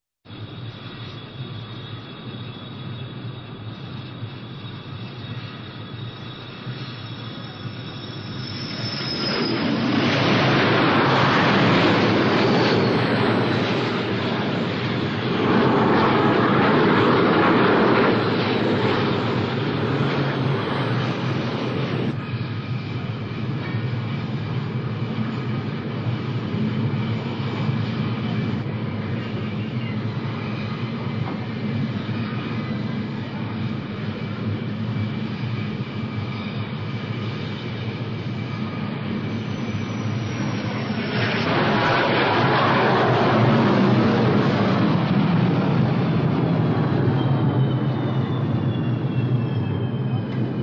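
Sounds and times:
aircraft flyby and landing: 0:00.3 - 0:50.6.

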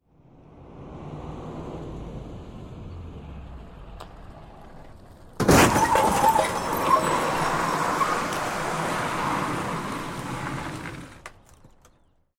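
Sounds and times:
car running over something and moving on: 0:02.6 - 0:11.8.

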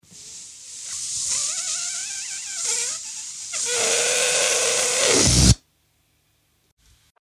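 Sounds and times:
balloon deflating through a small hole: 0:00.1 - 0:05.6
balloon popping: 0:01.3 - 0:05.6.

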